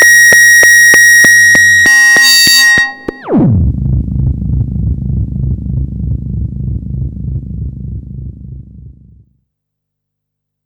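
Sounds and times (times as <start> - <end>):
MS-20 and TS-303 synthesizers: 0.0 - 6.9.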